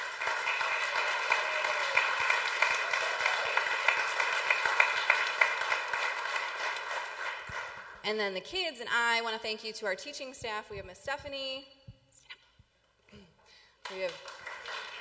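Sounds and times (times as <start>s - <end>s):
audience applause: 0.0s - 8.0s, 13.9s - 14.9s
speech: 8.1s - 11.8s, 13.9s - 14.3s.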